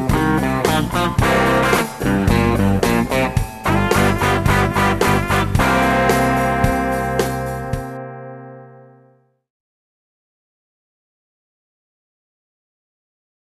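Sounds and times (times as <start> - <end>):
rhythm guitar: 0.0 - 8.8.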